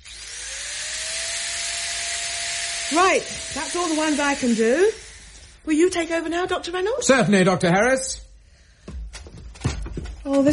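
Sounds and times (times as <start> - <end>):
power drill drilling during DIY work: 0.0 - 5.7
speech: 2.9 - 5.0, 5.6 - 8.2, 10.3 - 10.5.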